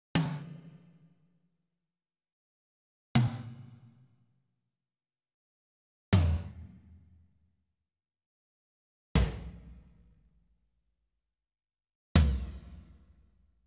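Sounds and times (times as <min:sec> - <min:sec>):
tom drum hit with stick: 0:09.2 - 0:10.1, 0:12.2 - 0:13.1.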